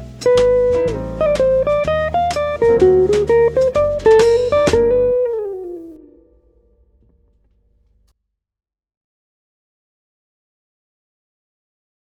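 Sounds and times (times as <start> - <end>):
jazz music: 0.0 - 7.3.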